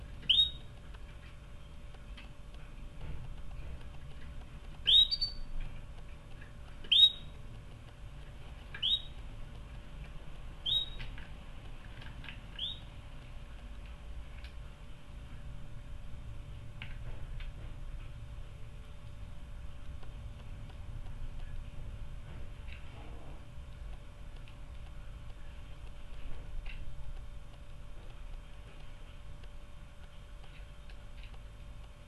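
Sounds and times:
low background hum: 0:00.0 - 0:32.0
canary calling: 0:00.2 - 0:00.7, 0:04.8 - 0:05.5, 0:06.8 - 0:07.4, 0:08.7 - 0:09.2, 0:10.6 - 0:11.2, 0:12.5 - 0:12.9.

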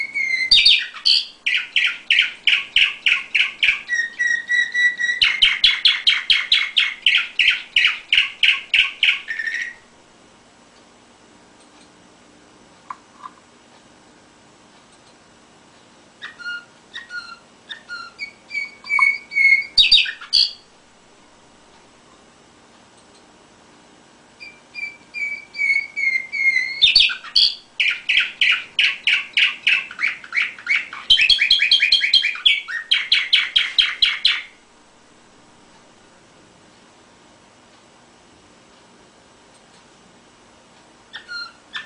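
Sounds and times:
canary song: 0:00.0 - 0:09.9, 0:16.2 - 0:20.8, 0:24.4 - 0:34.7, 0:41.1 - 0:41.8.

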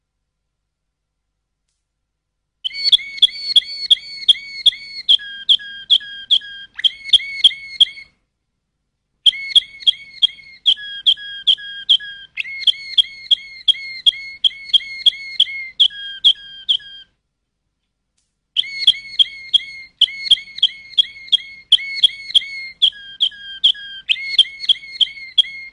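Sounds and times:
canary song of rapid trills and whistled phrases: 0:02.7 - 0:08.1, 0:09.3 - 0:17.1, 0:18.6 - 0:25.7.

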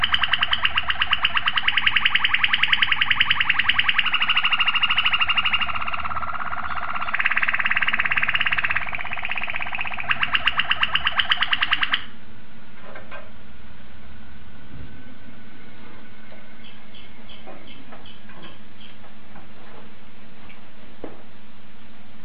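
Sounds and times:
domestic canary song: 0:00.0 - 0:12.1, 0:16.6 - 0:19.0.

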